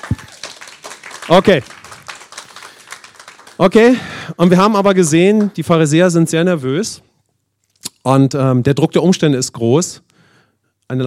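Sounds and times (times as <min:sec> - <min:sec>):
people cheering: 0:00.0 - 0:04.0
audience applauding: 0:00.0 - 0:04.2
speech: 0:01.3 - 0:01.7, 0:03.6 - 0:07.1, 0:08.0 - 0:10.1, 0:10.9 - 0:11.0.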